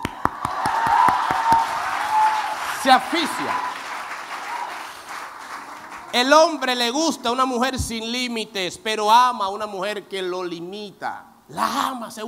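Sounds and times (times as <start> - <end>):
applause: 0.0 - 6.7
speech: 2.8 - 3.7, 6.1 - 12.2.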